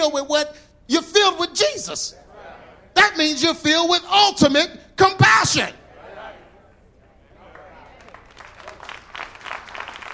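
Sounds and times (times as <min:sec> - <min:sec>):
speech: 0:00.0 - 0:02.4, 0:03.0 - 0:05.8
scattered audience clapping: 0:07.4 - 0:10.1.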